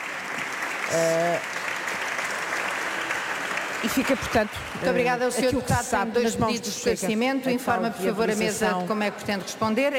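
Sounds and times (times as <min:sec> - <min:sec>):
standing applause from parliamentary colleagues: 0:00.0 - 0:05.8
speech: 0:00.9 - 0:01.6, 0:03.8 - 0:09.9.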